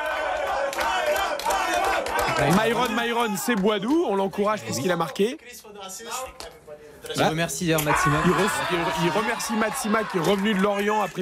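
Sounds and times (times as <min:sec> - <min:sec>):
stadium crowd applauding: 0:00.0 - 0:04.4, 0:08.0 - 0:11.2
speech: 0:02.4 - 0:11.2.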